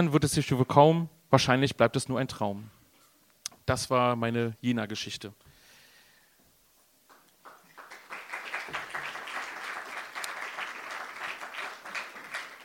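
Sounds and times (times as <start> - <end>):
speech: 0.0 - 2.8, 3.7 - 5.5
audience applause: 7.1 - 12.6.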